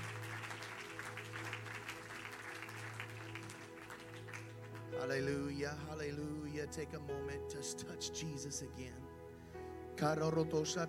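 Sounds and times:
audience applause: 0.0s - 5.1s
speech: 5.0s - 9.1s, 10.0s - 10.8s.

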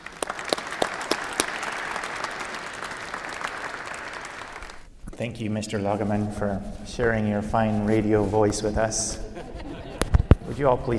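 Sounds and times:
audience clapping to welcome a priest: 0.0s - 4.9s
speech: 5.2s - 9.3s, 10.5s - 10.9s
laughter: 9.0s - 10.9s.

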